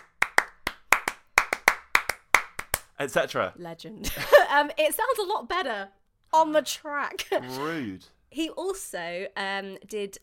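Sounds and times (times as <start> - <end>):
rhythmic hand clapping: 0.0 - 3.0
speech: 3.0 - 10.2.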